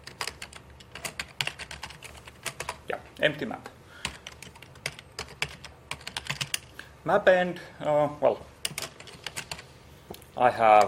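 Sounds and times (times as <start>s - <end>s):
computer keyboard typing: 0.0s - 2.8s, 4.0s - 6.7s, 8.6s - 9.6s
speech: 2.9s - 3.8s, 7.0s - 8.5s, 10.4s - 10.8s.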